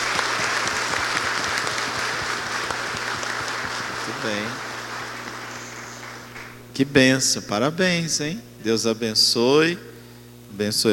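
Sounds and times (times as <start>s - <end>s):
round of applause: 0.0s - 6.6s
speech: 4.2s - 4.7s, 6.8s - 9.9s, 10.6s - 10.9s.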